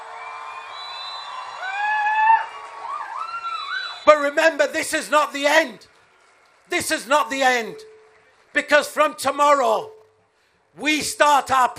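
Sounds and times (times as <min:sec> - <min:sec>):
crowd applause and cheering: 0:00.0 - 0:04.0, 0:05.8 - 0:09.2
speech: 0:04.2 - 0:05.9, 0:06.7 - 0:07.9, 0:08.5 - 0:10.0, 0:10.8 - 0:11.7.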